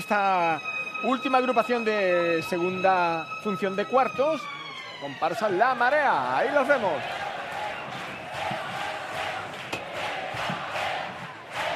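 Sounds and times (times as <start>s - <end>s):
speech: 0.1s - 7.2s
packed theatre audience shouting a war cry: 6.4s - 11.7s.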